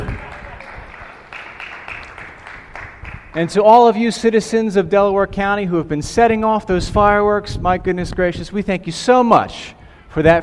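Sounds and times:
crowd applauding: 0:00.0 - 0:03.7
speech: 0:03.4 - 0:10.4.

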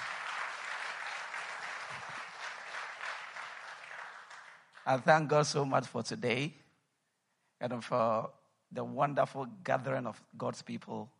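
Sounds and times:
audience clapping: 0:00.0 - 0:05.4
speech: 0:04.8 - 0:06.6, 0:07.6 - 0:11.1.

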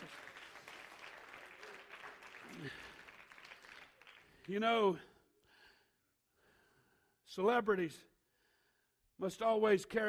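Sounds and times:
audience clapping hands: 0:00.0 - 0:04.6
speech: 0:02.6 - 0:03.0, 0:04.5 - 0:05.1, 0:07.3 - 0:08.1, 0:09.2 - 0:10.0.

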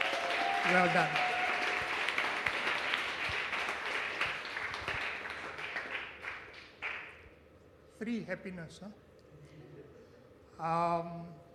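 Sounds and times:
crowd applause: 0:00.0 - 0:07.1
speech: 0:00.6 - 0:01.3, 0:08.0 - 0:09.0, 0:10.6 - 0:11.4.

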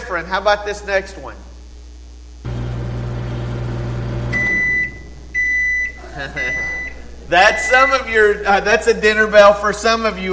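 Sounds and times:
speech: 0:00.1 - 0:01.5, 0:06.2 - 0:10.3
microwave oven humming: 0:01.5 - 0:10.3
microwave oven beeps: 0:02.5 - 0:08.6
laughter: 0:05.8 - 0:09.8.

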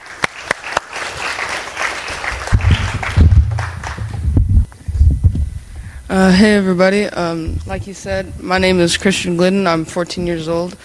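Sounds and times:
church audience applauding to welcome a teenage speaker: 0:00.0 - 0:04.4
low thuds: 0:02.5 - 0:06.6, 0:07.3 - 0:09.1
speech: 0:06.1 - 0:10.8.

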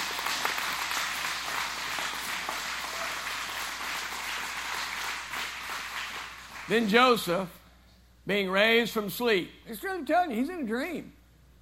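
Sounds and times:
audience clapping: 0:00.0 - 0:07.3
speech: 0:06.7 - 0:07.6, 0:08.2 - 0:11.2.

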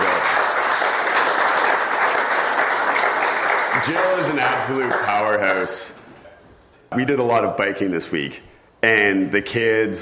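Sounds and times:
audience applause: 0:00.0 - 0:05.7
speech: 0:03.9 - 0:06.1, 0:06.9 - 0:10.0.

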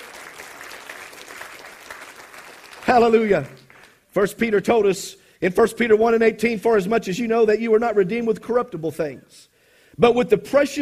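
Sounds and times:
audience hand clapping: 0:00.0 - 0:04.1
speech: 0:02.9 - 0:03.6, 0:04.2 - 0:10.8.

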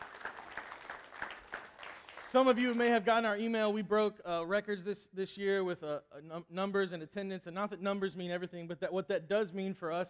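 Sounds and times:
audience applause: 0:00.0 - 0:03.1
speech: 0:02.3 - 0:10.0.

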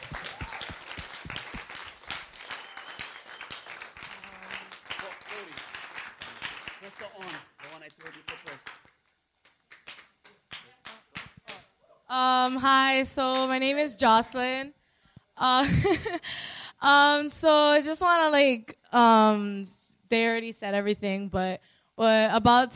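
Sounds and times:
audience clapping: 0:00.0 - 0:11.7
speech: 0:12.1 - 0:14.8, 0:15.4 - 0:22.7.

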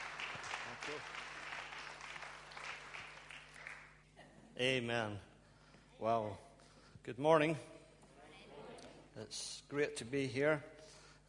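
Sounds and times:
crowd applauding: 0:00.0 - 0:04.0
speech: 0:00.8 - 0:01.3, 0:04.6 - 0:05.3, 0:06.0 - 0:06.5, 0:07.1 - 0:07.8, 0:09.2 - 0:10.7.

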